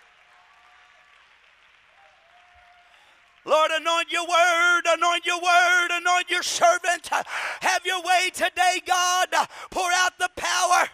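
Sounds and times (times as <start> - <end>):
crowd clapping hands in praise: 0.0 - 4.7
speech: 3.4 - 10.9.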